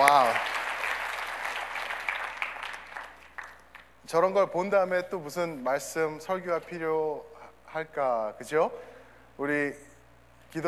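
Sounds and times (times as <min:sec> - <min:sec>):
speech: 0:00.0 - 0:00.5, 0:04.1 - 0:09.9
audience applause: 0:00.0 - 0:03.9.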